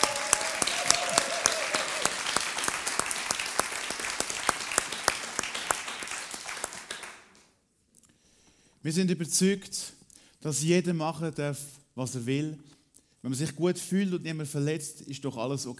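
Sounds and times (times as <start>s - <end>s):
audience applause: 0.0s - 7.3s
speech: 8.8s - 15.7s.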